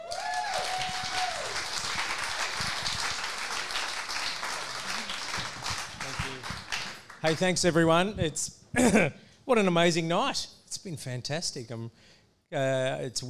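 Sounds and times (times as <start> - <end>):
audience applause greeting a pastor at a chapel Pride event: 0.0 - 7.6
speech: 7.2 - 13.2.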